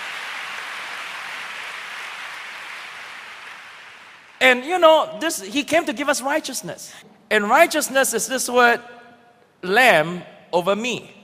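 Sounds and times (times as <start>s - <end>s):
audience clapping: 0.0s - 4.4s
speech: 4.4s - 9.0s, 9.6s - 11.2s.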